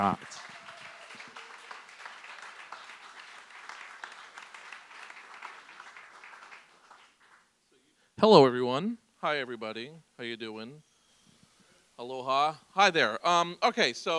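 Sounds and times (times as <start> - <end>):
speech: 0.0 - 0.5, 8.2 - 10.9, 12.0 - 14.1
audience applause: 0.0 - 7.5.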